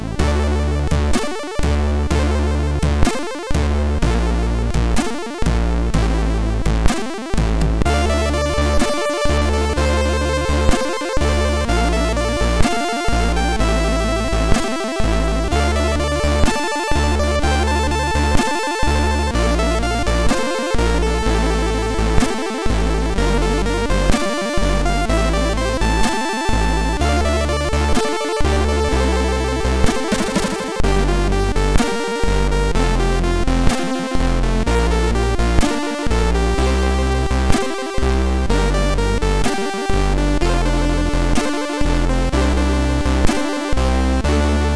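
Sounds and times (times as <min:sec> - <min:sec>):
MOS6581R3 SID chip music: 0:00.2 - 0:44.7.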